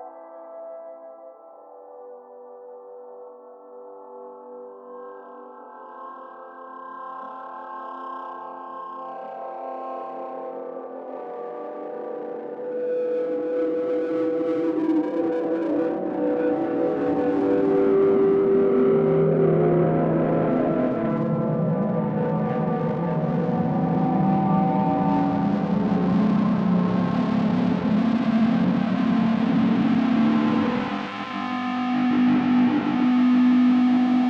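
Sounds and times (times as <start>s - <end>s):
noise: 7.0s - 34.2s.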